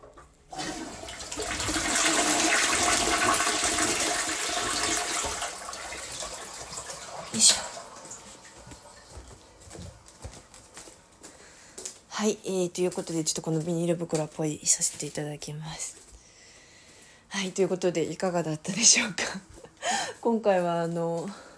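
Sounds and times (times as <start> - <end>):
toilet flushing: 0.5 - 9.2
speech: 12.2 - 16.1, 17.4 - 21.5.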